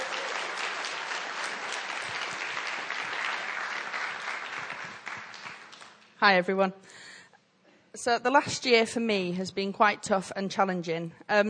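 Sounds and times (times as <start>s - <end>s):
audience applause: 0.0s - 6.0s
speech: 6.2s - 7.1s, 8.0s - 11.4s.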